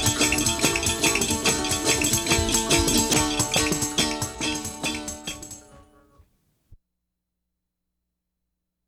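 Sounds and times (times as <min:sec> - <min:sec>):
tarantella dance music: 0:00.0 - 0:06.0.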